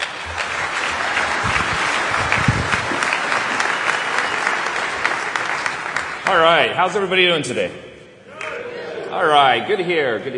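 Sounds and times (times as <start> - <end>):
audience applause welcoming a speaker at a security conference: 0.0 - 6.7
speech: 6.4 - 7.9, 9.2 - 10.3.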